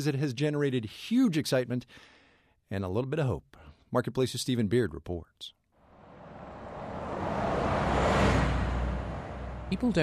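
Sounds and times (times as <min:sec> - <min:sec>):
speech: 0:00.0 - 0:05.6, 0:09.7 - 0:10.0
traffic thundering through a small town road: 0:05.8 - 0:10.0.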